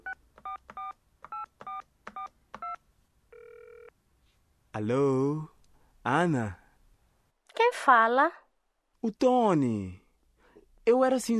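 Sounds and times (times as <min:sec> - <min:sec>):
telephone number being dialed on a keypad: 0:00.0 - 0:02.8
telephone ringing tone: 0:00.0 - 0:03.9
speech: 0:04.8 - 0:06.6, 0:07.7 - 0:08.4, 0:09.0 - 0:10.0, 0:10.9 - 0:11.3.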